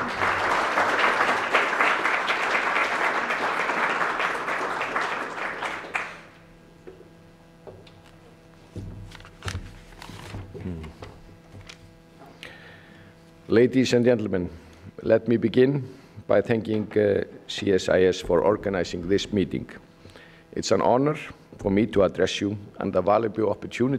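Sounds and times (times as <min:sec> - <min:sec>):
audience applause welcoming a speaker: 0:00.0 - 0:06.5
speech: 0:13.5 - 0:19.8, 0:20.5 - 0:23.9.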